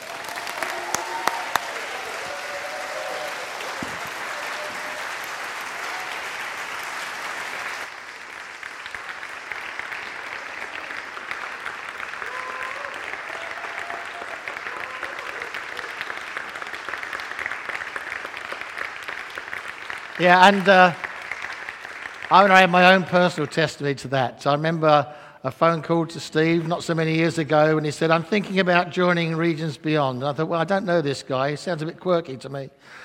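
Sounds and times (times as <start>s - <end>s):
audience standing ovation applause: 0.0s - 23.6s
speech: 20.2s - 21.0s, 22.3s - 33.0s.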